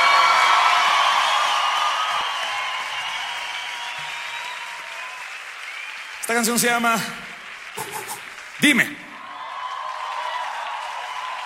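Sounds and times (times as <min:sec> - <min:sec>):
scattered whoops and cheers: 0:00.0 - 0:06.4, 0:09.0 - 0:11.4
crowd applauding: 0:00.0 - 0:11.4
speech: 0:06.3 - 0:07.2, 0:08.6 - 0:09.0.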